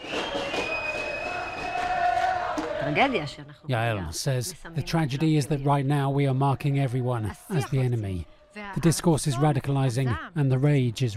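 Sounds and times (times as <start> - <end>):
crowd clapping in street procession: 0.0 - 3.4
speech: 2.8 - 11.1.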